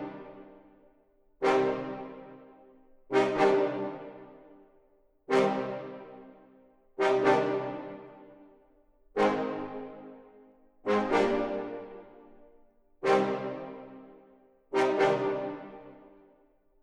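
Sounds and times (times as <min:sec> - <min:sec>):
brass loop at 124 BPM in C minor: 0:01.4 - 0:02.3, 0:03.1 - 0:04.2, 0:05.3 - 0:06.1, 0:07.0 - 0:08.3, 0:09.2 - 0:10.1, 0:10.8 - 0:12.2, 0:14.8 - 0:15.8.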